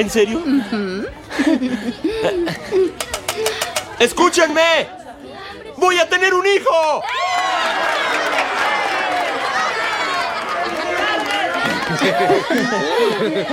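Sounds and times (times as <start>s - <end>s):
speech: 0.0s - 3.2s, 4.0s - 5.0s, 5.8s - 7.8s, 11.9s - 13.5s
laughter: 0.5s - 3.5s, 7.6s - 13.5s
crowd ovation cheering: 6.9s - 13.5s.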